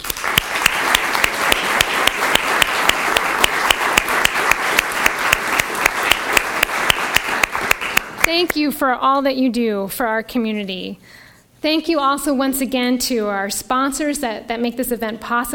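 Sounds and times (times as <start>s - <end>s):
audience applause: 0.0s - 8.3s
speech: 8.4s - 15.5s.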